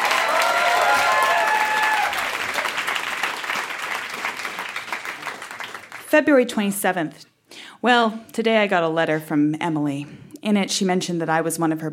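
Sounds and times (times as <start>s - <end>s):
audience applause welcoming a performer to the stage: 0.0s - 6.0s
speech: 6.1s - 11.9s.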